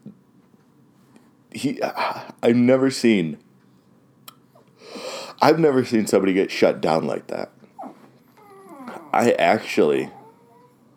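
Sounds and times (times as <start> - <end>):
speech: 1.5 - 3.4, 5.4 - 7.6, 9.2 - 10.2
dog whimpering: 7.8 - 10.9.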